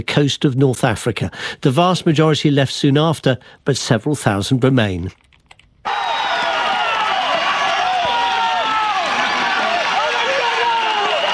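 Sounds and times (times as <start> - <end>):
speech: 0.0 - 5.2
crowd of residents shouting while attacking a migrant camp: 5.9 - 11.3.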